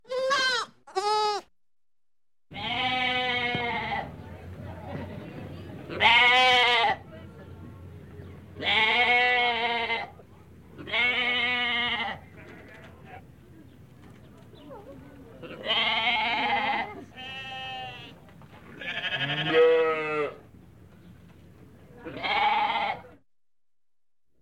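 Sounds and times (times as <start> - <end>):
young goat bleating: 0.0 - 1.5, 2.5 - 4.1, 5.9 - 7.0, 8.6 - 10.1, 10.8 - 13.2, 15.4 - 18.2, 18.8 - 20.4, 22.0 - 23.2.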